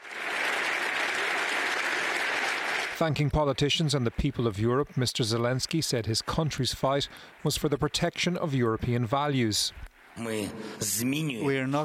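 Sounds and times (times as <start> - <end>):
rapturous applause in parliament chamber: 0.0 - 3.2
speech: 3.0 - 11.8.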